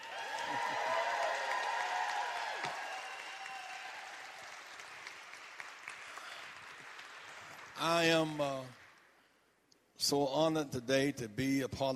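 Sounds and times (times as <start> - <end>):
scattered cheers and shouts: 0.0 - 4.5
crowd applauding: 0.0 - 9.2
speech: 7.8 - 8.7, 10.0 - 11.9.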